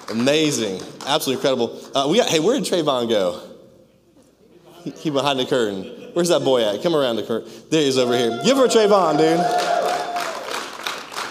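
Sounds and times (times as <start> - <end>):
audience clapping: 0.0 - 2.4, 8.9 - 11.2
speech: 0.1 - 3.5, 4.8 - 9.7.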